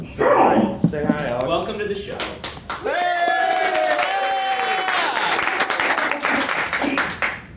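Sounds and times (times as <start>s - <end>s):
speech: 0.0s - 3.0s
audience applauding: 2.2s - 7.4s
audience whoops and shouts: 2.8s - 5.4s.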